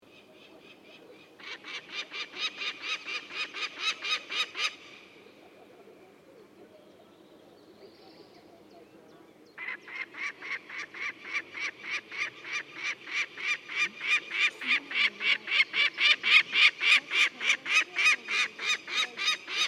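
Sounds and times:
sapsan voice: 0:00.4 - 0:05.1, 0:09.6 - 0:19.6.

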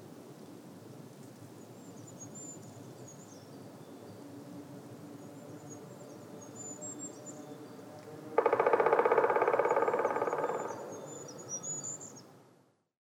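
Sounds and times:
black woodpecker calling: 0:08.4 - 0:12.2.

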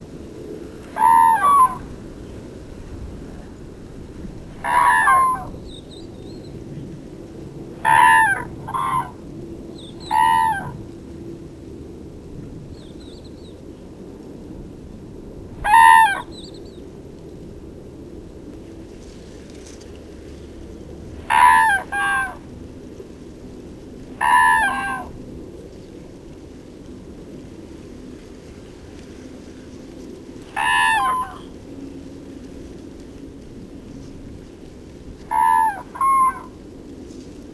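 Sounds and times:
common crane calling: 0:00.8 - 0:02.0, 0:04.5 - 0:06.6, 0:07.8 - 0:10.9, 0:15.6 - 0:16.7, 0:21.2 - 0:22.5, 0:24.1 - 0:25.2, 0:30.4 - 0:31.7, 0:35.2 - 0:37.2.

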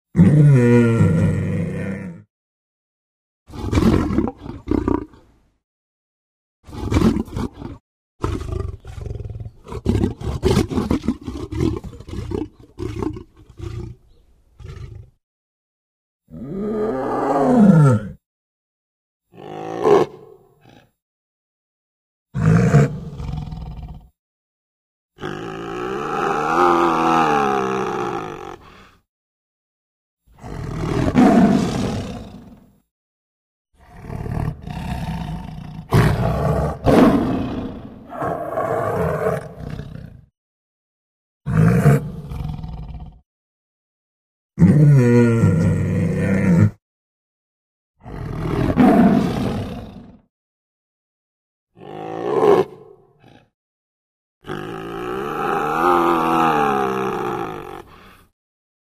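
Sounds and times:
tiger voice: 0:00.1 - 0:02.3, 0:03.5 - 0:05.2, 0:06.7 - 0:14.0, 0:16.3 - 0:18.2, 0:19.3 - 0:21.0, 0:22.4 - 0:24.1, 0:25.2 - 0:28.9, 0:30.4 - 0:32.7, 0:33.8 - 0:40.2, 0:41.5 - 0:43.2, 0:44.6 - 0:46.8, 0:48.0 - 0:50.3, 0:51.8 - 0:53.5, 0:54.4 - 0:58.2.

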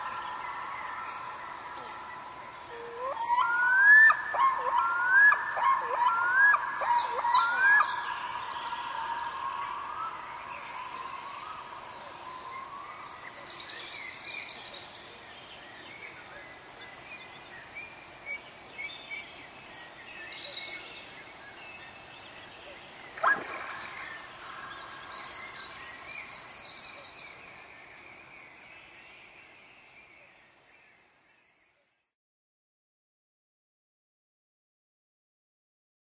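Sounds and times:
red-throated loon calling: 0:02.7 - 0:09.7, 0:23.2 - 0:24.7.

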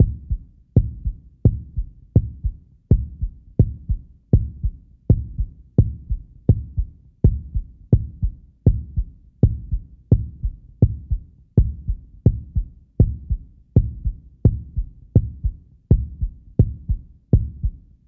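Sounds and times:
heartbeat: 0:00.0 - 0:17.8.

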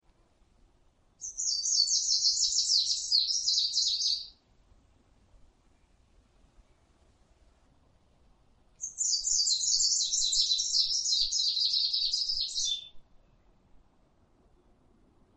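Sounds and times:
greenish warbler voice: 0:01.2 - 0:04.4, 0:08.8 - 0:13.0.

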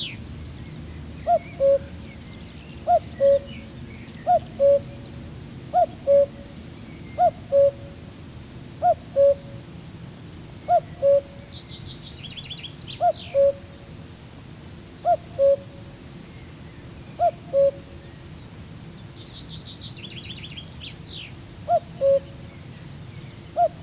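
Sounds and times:
common cuckoo calling: 0:01.2 - 0:02.0, 0:02.8 - 0:05.1, 0:05.7 - 0:08.0, 0:08.8 - 0:09.6, 0:10.6 - 0:11.6, 0:12.3 - 0:13.8, 0:15.0 - 0:15.8, 0:17.2 - 0:18.0, 0:21.7 - 0:22.4, 0:23.6 - 0:23.8.

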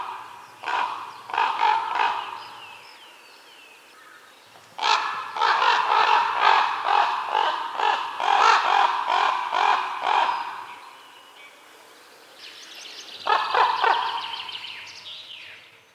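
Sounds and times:
raven calling: 0:00.0 - 0:02.9, 0:03.9 - 0:11.1, 0:13.2 - 0:14.9.

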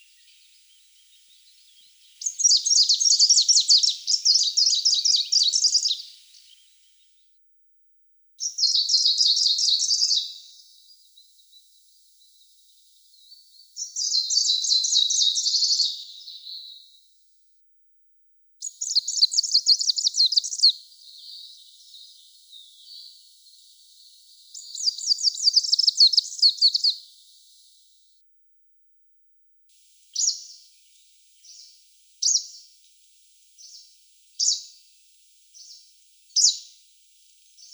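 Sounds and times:
greenish warbler voice: 0:00.0 - 0:06.7, 0:08.4 - 0:10.6, 0:13.1 - 0:16.9, 0:18.6 - 0:27.6, 0:30.0 - 0:32.7, 0:33.6 - 0:34.8, 0:35.6 - 0:36.8.

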